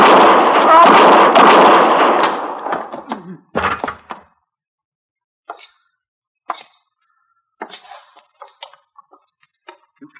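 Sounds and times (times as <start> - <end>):
gunshots in a radio western shootout: 0.0 - 3.9.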